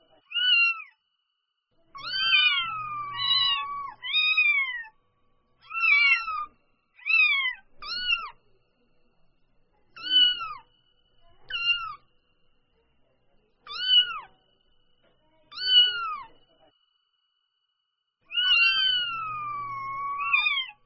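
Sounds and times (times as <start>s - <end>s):
domestic cat kitten meowing: 0.2s - 1.0s, 1.9s - 4.9s, 5.6s - 8.4s, 10.0s - 10.6s, 11.5s - 12.0s, 13.7s - 14.3s, 15.5s - 16.3s, 18.3s - 20.8s.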